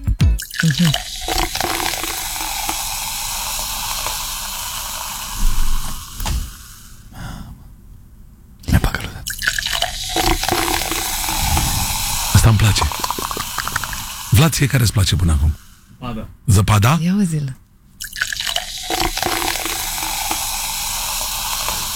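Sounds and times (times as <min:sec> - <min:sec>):
fizzy juice poured into a glass: 0:00.4 - 0:05.4, 0:09.2 - 0:14.4, 0:18.0 - 0:21.9
speech: 0:00.6 - 0:01.7, 0:14.4 - 0:17.6.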